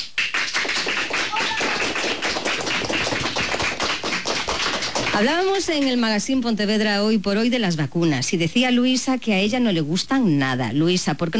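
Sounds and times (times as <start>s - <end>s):
schoolchildren applauding: 0.0s - 6.0s
speech: 5.2s - 11.3s.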